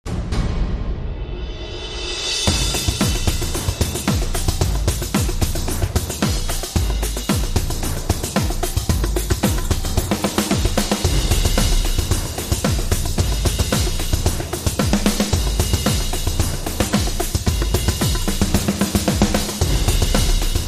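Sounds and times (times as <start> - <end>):
drums: 0.0 - 20.6.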